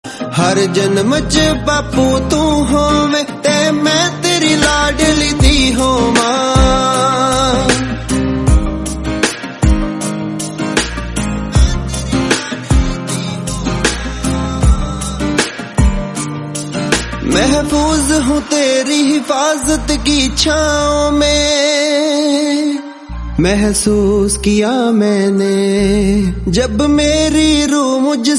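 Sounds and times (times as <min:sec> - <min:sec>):
lo-fi Punjabi song: 0:00.0 - 0:28.3.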